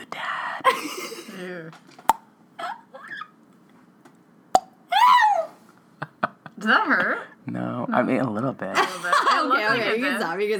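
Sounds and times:
speech: 0.7 - 2.0, 6.6 - 10.5
voice imitating water droplets: 4.6 - 4.8.

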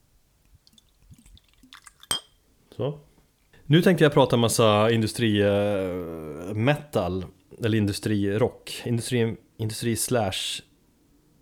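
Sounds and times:
rum glugging into a glass: 0.6 - 2.4
glass clinking: 0.8 - 2.4
speech: 2.8 - 3.1, 3.7 - 10.7.

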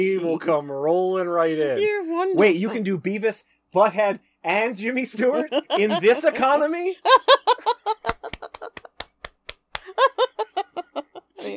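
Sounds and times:
speech: 0.0 - 7.8
laughter: 5.1 - 9.0, 9.8 - 11.5
hand claps: 8.0 - 10.0.

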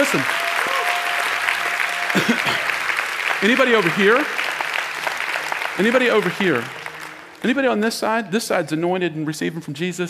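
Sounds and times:
speech: 0.0 - 0.4, 2.1 - 2.7, 3.4 - 4.4, 5.8 - 6.8, 7.4 - 10.0
audience applause: 0.0 - 7.7.

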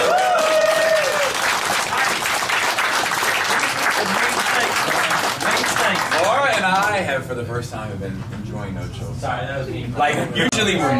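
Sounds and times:
audience applause at a live show: 0.0 - 6.8
speech: 7.2 - 10.9.

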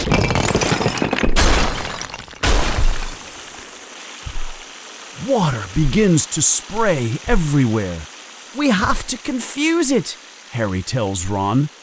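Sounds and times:
sinks along a wall smashed by a large club: 0.0 - 3.7
speech: 5.3 - 11.8.

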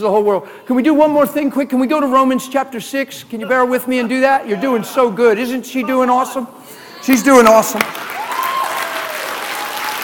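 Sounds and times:
speech: 0.0 - 8.0
audience hand clap: 7.7 - 10.0.

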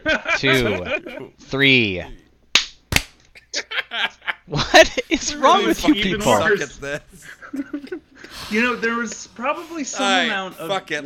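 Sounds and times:
laughter: 0.0 - 1.3, 3.3 - 8.3
speech: 0.4 - 2.2, 4.5 - 11.0
hand claps for syncing audio tracks: 2.6 - 3.2.

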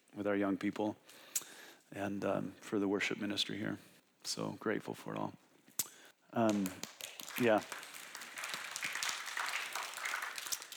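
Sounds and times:
speech: 0.2 - 5.4, 6.3 - 7.8
audience applause: 6.5 - 10.7.

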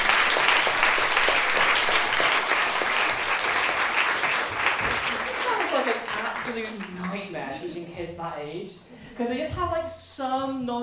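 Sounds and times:
audience applause: 0.0 - 7.2
speech: 7.7 - 10.8.

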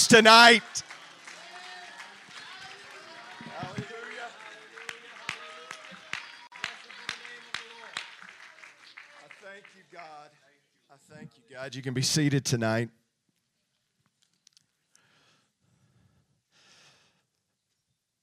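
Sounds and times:
audience shouting: 0.0 - 4.2
audience clapping hands: 0.0 - 10.4
speech: 0.1 - 0.9, 11.0 - 13.0.

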